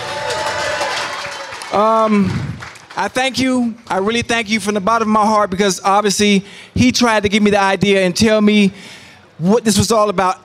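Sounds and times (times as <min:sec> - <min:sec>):
audience applause: 0:00.0 - 0:03.0
speech: 0:01.7 - 0:10.4.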